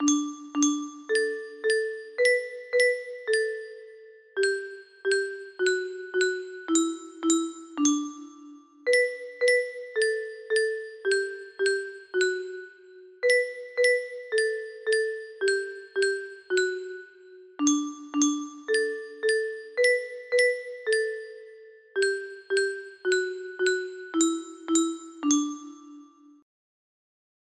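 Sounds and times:
music box melody: 0.0 - 26.4.

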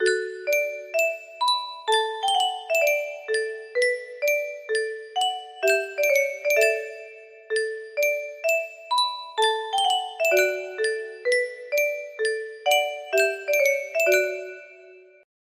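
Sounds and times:
Yunsheng music box: 0.0 - 15.2.

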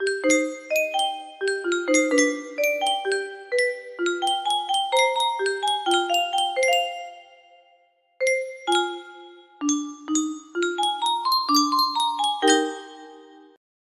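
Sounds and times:
Yunsheng custom tune music box: 0.0 - 7.6, 8.2 - 13.6.

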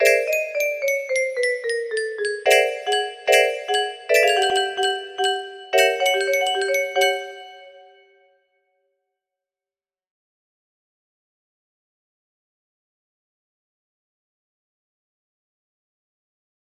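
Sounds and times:
music box melody: 0.0 - 8.0.

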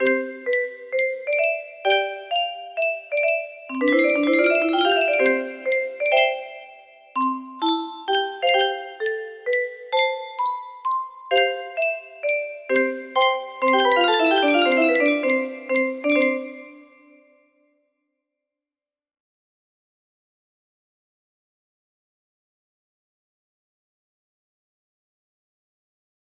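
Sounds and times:
music box melody: 0.0 - 17.2.

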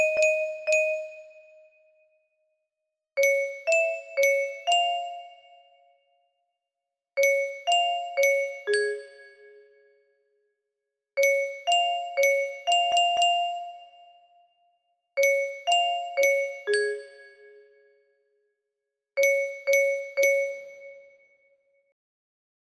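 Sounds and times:
music box melody: 0.0 - 1.6, 3.2 - 5.7, 7.2 - 9.6, 11.2 - 14.2, 15.2 - 17.7, 19.2 - 21.1.

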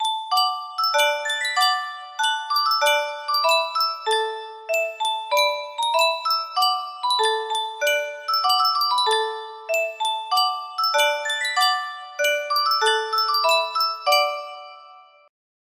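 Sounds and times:
yunsheng music box: 0.0 - 15.3.

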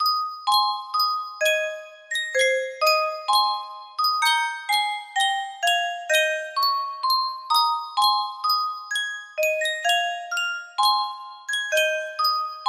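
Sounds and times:
music box melody: 0.0 - 12.6.

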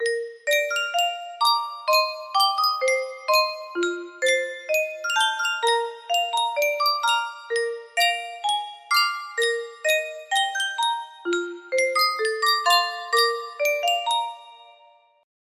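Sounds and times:
Sankyo custom tune music box melody: 0.0 - 15.2.

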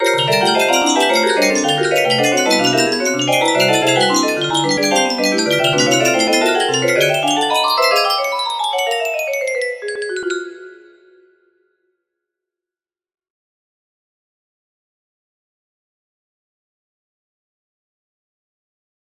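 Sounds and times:
melody: 0.0 - 11.5.

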